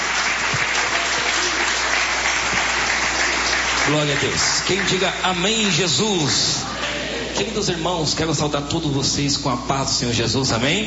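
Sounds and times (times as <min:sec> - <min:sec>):
audience applauding: 0:00.0 - 0:07.4
speech: 0:03.9 - 0:06.7, 0:07.4 - 0:10.8.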